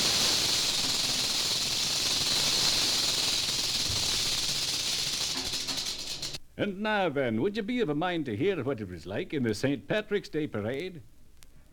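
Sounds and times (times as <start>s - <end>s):
rattlesnake rattling: 0.0s - 6.4s
speech: 6.6s - 11.1s.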